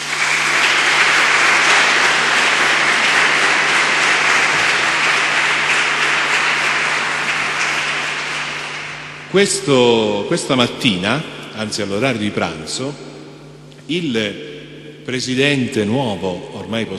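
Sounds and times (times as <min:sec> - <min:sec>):
audience applause: 0:00.0 - 0:09.4
speech: 0:09.3 - 0:13.2, 0:13.9 - 0:14.5, 0:15.1 - 0:16.9.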